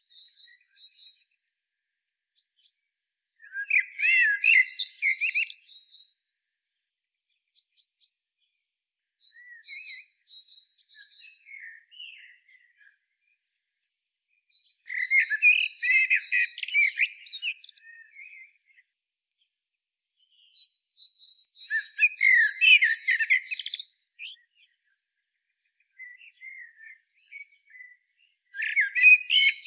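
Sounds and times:
common blackbird warbling song: 0:00.0 - 0:01.5, 0:02.4 - 0:29.6
other birds' thin calls: 0:03.7 - 0:05.8, 0:14.9 - 0:18.0, 0:21.8 - 0:24.4, 0:28.6 - 0:29.6.

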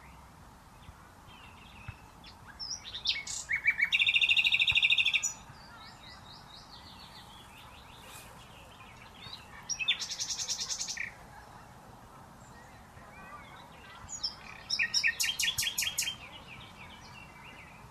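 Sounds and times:
common nightingale song: 0:00.0 - 0:11.2, 0:12.4 - 0:17.8.

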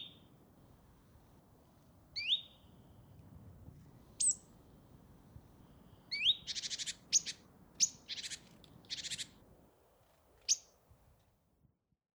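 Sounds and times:
great tit calls: 0:02.1 - 0:03.1, 0:04.0 - 0:09.5, 0:10.4 - 0:10.8.

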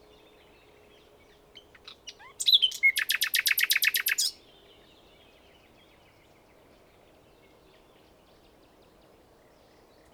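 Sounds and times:
common nightingale song: 0:01.5 - 0:04.9.

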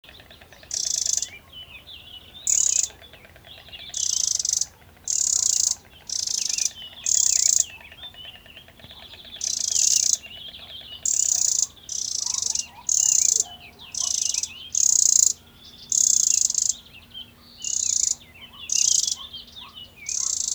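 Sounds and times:
Eurasian wren harsh rattling calls: 0:00.1 - 0:20.5.

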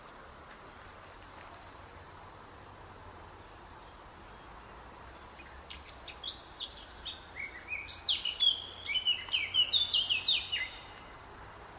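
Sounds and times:
Eurasian blackcap song: 0:00.0 - 0:11.7.

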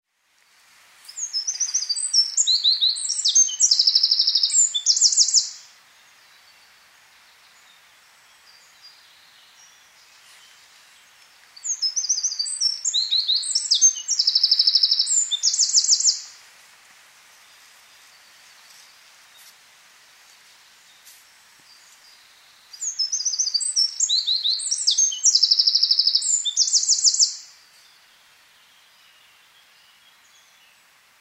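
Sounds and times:
Eurasian wren singing: 0:01.1 - 0:05.7, 0:11.6 - 0:16.4, 0:22.7 - 0:27.5.

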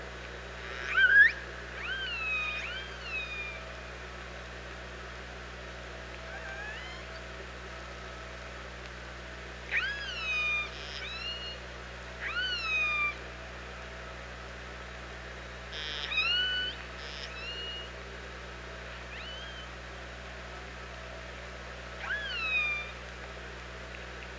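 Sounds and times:
steady low hum: 0:00.0 - 0:24.3
orca harmonic whistle-like calls: 0:00.6 - 0:03.7, 0:09.7 - 0:11.6, 0:12.2 - 0:13.2, 0:15.7 - 0:18.0, 0:19.1 - 0:19.7, 0:22.0 - 0:23.0.

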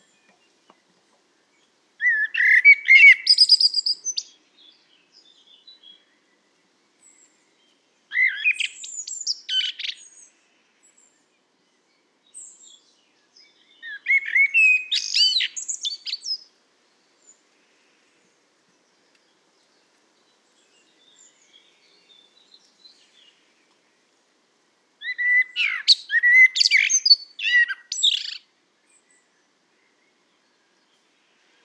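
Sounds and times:
common blackbird singing: 0:01.5 - 0:06.2, 0:07.0 - 0:16.5, 0:19.3 - 0:23.6, 0:25.0 - 0:31.0.

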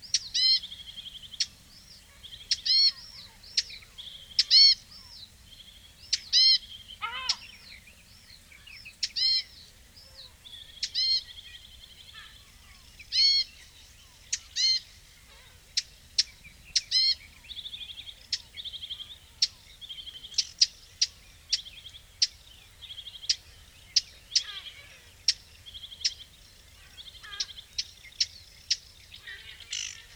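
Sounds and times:
Eurasian blackcap ticking calls: 0:00.0 - 0:05.2, 0:06.0 - 0:07.8, 0:08.6 - 0:14.9, 0:15.7 - 0:30.1.

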